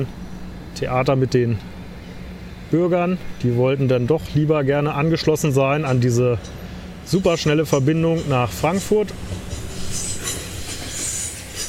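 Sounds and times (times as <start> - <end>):
speech: 0.0 - 0.2, 0.8 - 1.8, 2.7 - 9.4
train at Frankfurt Süd station rolling rumble: 0.0 - 11.6
bright hiss of a train: 9.1 - 11.6
thin high train wheel squeal: 9.5 - 11.6.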